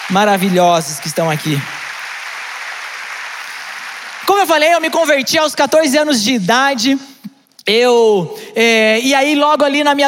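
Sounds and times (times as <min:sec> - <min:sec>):
audience applause: 0:00.0 - 0:05.7
speech: 0:00.1 - 0:01.8, 0:04.4 - 0:07.1, 0:07.7 - 0:10.0.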